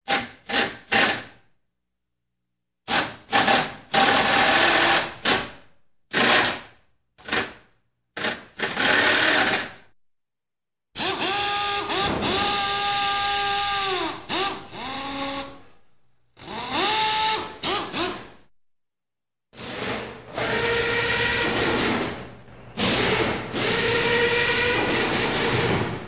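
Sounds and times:
pneumatic impact wrench under light load: 0:00.1 - 0:01.3, 0:02.9 - 0:07.6, 0:08.2 - 0:09.8, 0:11.0 - 0:15.7, 0:16.4 - 0:18.4, 0:19.6 - 0:26.0.

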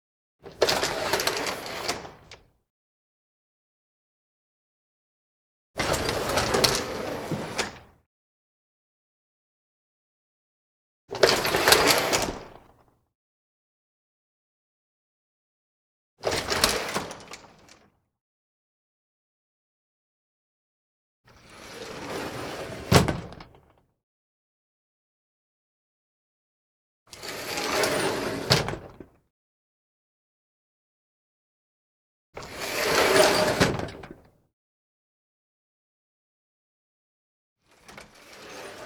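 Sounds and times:
sliding doors opening and closing: 0:00.6 - 0:02.3, 0:05.8 - 0:07.9, 0:11.3 - 0:12.5, 0:21.5 - 0:23.4, 0:27.2 - 0:29.0, 0:32.4 - 0:34.2.

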